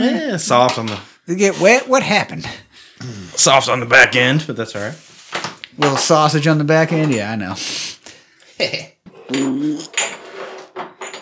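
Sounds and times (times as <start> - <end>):
speech: 0.0 - 5.1, 5.8 - 8.0, 8.6 - 10.2
glasses clinking as they are moved: 9.1 - 11.1.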